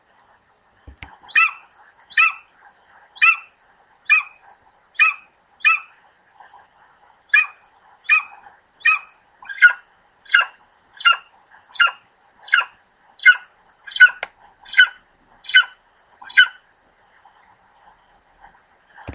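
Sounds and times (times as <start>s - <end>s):
Golden eagle giving sharp high yelps: 1.3s - 2.5s, 3.2s - 3.5s, 4.1s - 4.4s, 5.0s - 5.9s, 7.3s - 16.6s.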